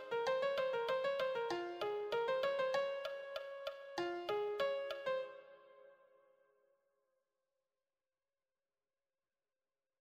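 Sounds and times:
lead piano: 0.0 - 5.4.

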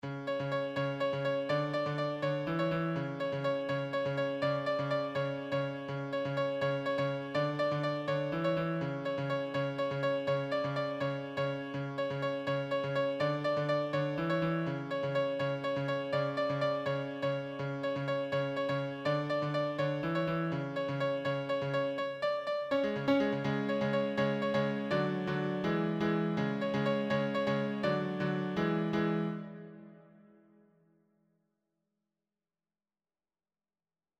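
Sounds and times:
solo piano: 0.0 - 30.7.

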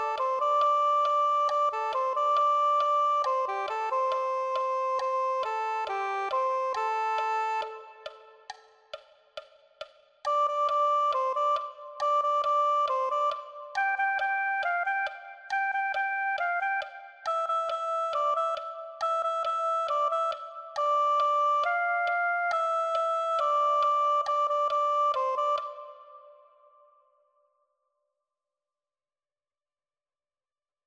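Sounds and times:
soprano saxophone: 0.0 - 8.2, 10.3 - 26.3.

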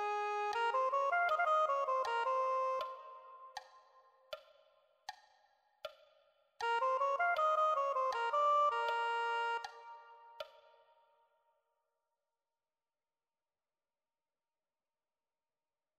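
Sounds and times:
soprano saxophone: 0.0 - 3.5, 6.6 - 10.5.

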